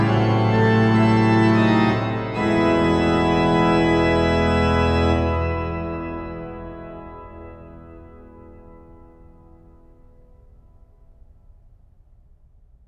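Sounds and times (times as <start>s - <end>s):
organ fughetta: 0.0s - 10.1s.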